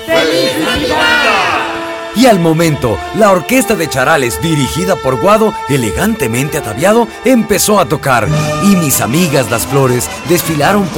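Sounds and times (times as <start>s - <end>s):
crowd shouting in unison: 0.0s - 2.1s
speech: 2.2s - 10.9s.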